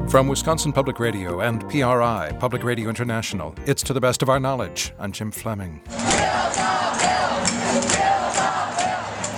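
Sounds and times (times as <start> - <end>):
speech: 0.1 - 8.5
angry crowds of furious teachers, nurses and firefighters: 5.9 - 9.3.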